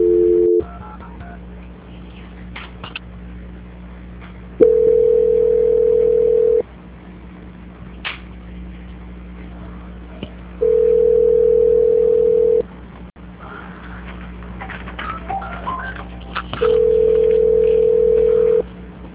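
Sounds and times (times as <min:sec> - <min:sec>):
telephone line beeps during a call transfer: 0:00.0 - 0:00.7, 0:04.6 - 0:06.6, 0:10.6 - 0:12.6, 0:16.6 - 0:18.6.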